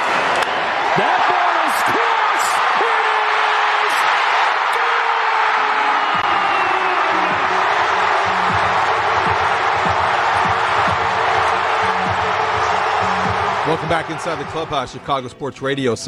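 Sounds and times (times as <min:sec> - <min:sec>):
baseball crowd cheering a Cubs grand slam: 0:00.0 - 0:15.2
speech: 0:01.0 - 0:01.9, 0:13.9 - 0:16.0
scattered claps: 0:06.0 - 0:14.8.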